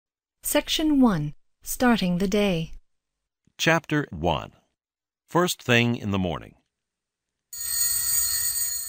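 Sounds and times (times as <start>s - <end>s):
speech: 0.5s - 2.8s, 3.6s - 4.6s, 5.3s - 6.6s
alarm clock ringing: 7.6s - 8.8s.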